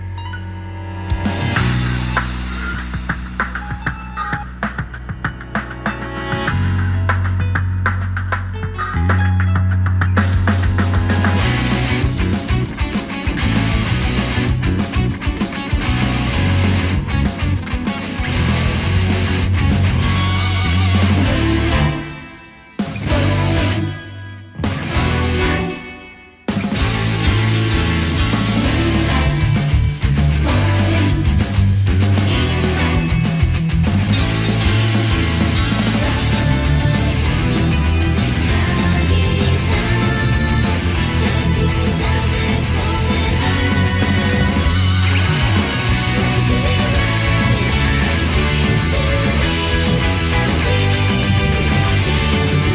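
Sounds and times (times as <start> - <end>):
instrumental music: 0.1 - 52.7.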